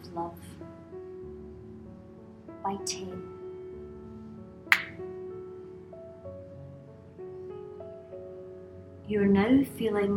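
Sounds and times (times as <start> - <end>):
speech: 0.1 - 0.8, 2.6 - 3.3, 9.1 - 10.1
finger snap: 4.7 - 5.0.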